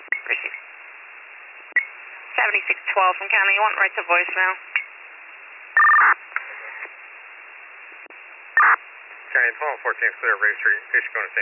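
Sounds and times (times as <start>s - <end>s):
speech: 2.5s - 4.8s, 5.8s - 6.3s, 9.4s - 11.4s
telephone number being dialed: 5.8s - 6.1s.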